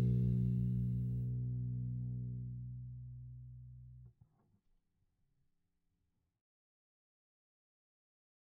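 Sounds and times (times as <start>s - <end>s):
engine: 0.0s - 2.8s
bass: 0.0s - 4.2s.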